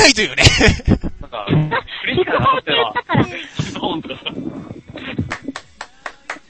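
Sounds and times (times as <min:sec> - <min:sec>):
speech: 0:00.1 - 0:04.7
laughter: 0:00.2 - 0:05.6
voice murmur: 0:01.5 - 0:05.6
sampled applause sound effect: 0:05.0 - 0:06.4.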